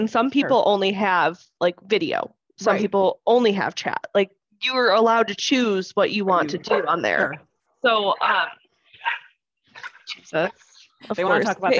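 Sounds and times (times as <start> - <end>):
speech: 0.0 - 9.2, 9.8 - 11.7
pet dog growling: 6.4 - 7.4
pet dog giving short bark-like bursts: 6.6 - 7.1, 8.2 - 10.0, 11.2 - 11.6.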